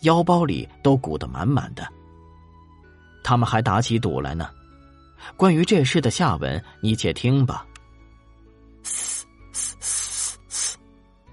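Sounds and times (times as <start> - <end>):
speech: 0.0 - 2.0, 3.2 - 4.6, 5.2 - 7.7
rotten apples sizzling beside a stove: 8.9 - 10.8.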